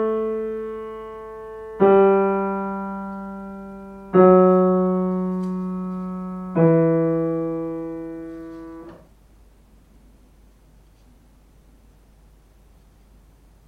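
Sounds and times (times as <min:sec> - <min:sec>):
piano: 0:00.0 - 0:09.1.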